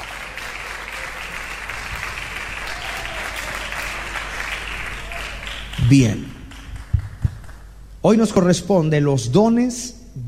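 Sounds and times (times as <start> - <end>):
audience applauding loudly: 0.0 - 7.8
speech: 5.9 - 6.4, 8.0 - 10.2.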